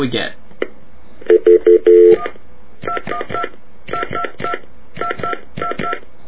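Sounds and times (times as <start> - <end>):
telephone keypad tones: 1.3 - 6.0.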